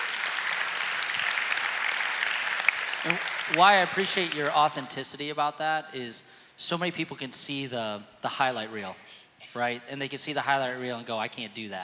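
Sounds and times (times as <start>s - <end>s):
audience applause: 0.0s - 4.7s
speech: 3.0s - 11.8s.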